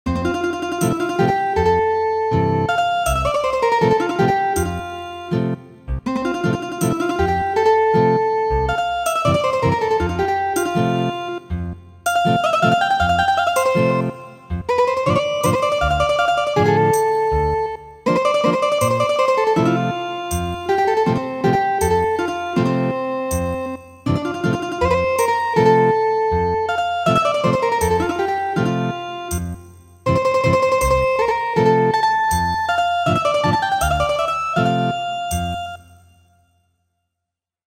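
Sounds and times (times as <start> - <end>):
ethnic guitar traditional MIDI music: 0.1 - 35.9.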